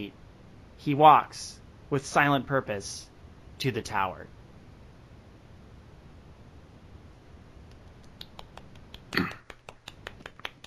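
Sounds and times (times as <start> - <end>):
speech: 0.0 - 0.2, 0.8 - 4.4
quiet golf clap: 7.7 - 10.6.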